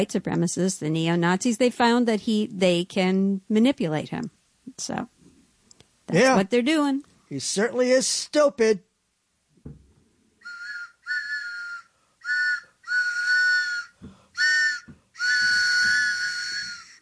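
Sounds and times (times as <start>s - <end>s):
speech: 0.0s - 5.2s, 6.1s - 8.9s
faint thump: 9.6s - 10.1s, 14.0s - 14.2s
train whistle: 10.4s - 17.0s.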